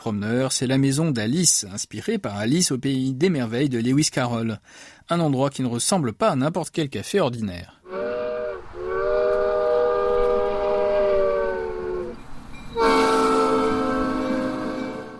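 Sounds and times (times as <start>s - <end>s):
speech: 0.0s - 8.0s
small two-car train whistle at an Alice in Wonderland-themed café: 7.8s - 15.1s.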